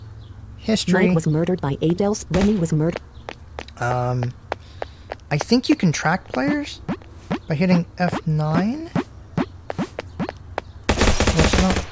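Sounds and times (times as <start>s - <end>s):
speech: 0.6s - 3.2s, 3.8s - 4.4s, 5.3s - 6.9s, 7.5s - 9.0s
gunfire in a video game: 10.9s - 11.8s.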